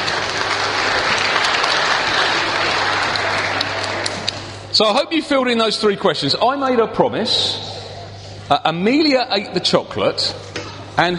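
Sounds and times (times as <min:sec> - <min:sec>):
audience applause: 0:00.0 - 0:04.5
speech: 0:04.8 - 0:07.6, 0:08.5 - 0:11.1.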